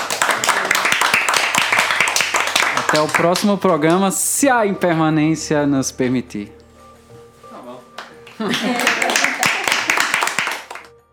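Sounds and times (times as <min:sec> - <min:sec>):
applause: 0:00.0 - 0:04.0, 0:08.4 - 0:10.9
speech: 0:02.9 - 0:06.6, 0:08.4 - 0:08.9
laughter: 0:08.4 - 0:10.4.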